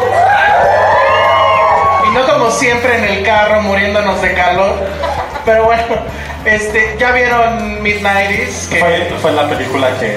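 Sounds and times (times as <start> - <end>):
cinema audience cheering and whooping: 0.0 - 5.5
speech: 2.5 - 10.1
laughter: 4.0 - 10.1.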